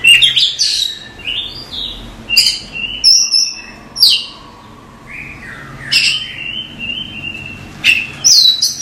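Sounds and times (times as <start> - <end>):
Oriental magpie-robin song: 0.0 - 8.8.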